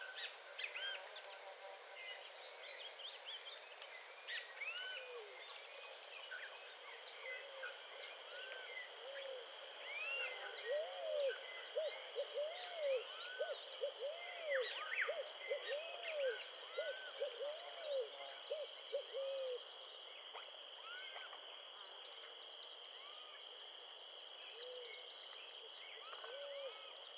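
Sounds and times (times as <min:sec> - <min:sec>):
Atlantic Forest ambience: 0:00.0 - 0:27.1.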